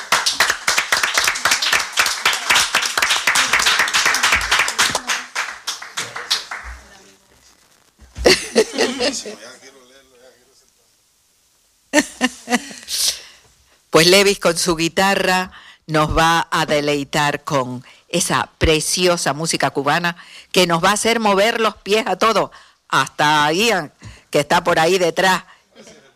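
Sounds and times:
audience applause: 0:00.0 - 0:07.0
laughter: 0:08.2 - 0:09.6, 0:12.0 - 0:12.9
speech: 0:08.6 - 0:09.7, 0:14.0 - 0:25.9.

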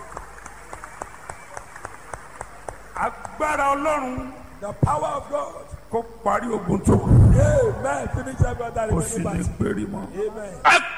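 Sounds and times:
group clapping: 0:00.0 - 0:03.8
soft hum: 0:00.0 - 0:10.8
speech: 0:03.0 - 0:10.9.

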